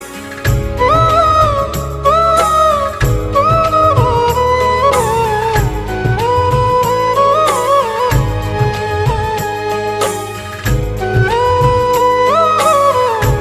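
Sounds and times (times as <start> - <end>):
flute ringtone: 0.5 - 13.4.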